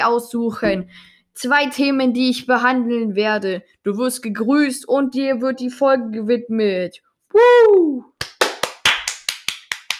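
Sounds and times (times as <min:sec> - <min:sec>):
speech: 0:00.0 - 0:08.2
hands clapping: 0:08.2 - 0:09.9.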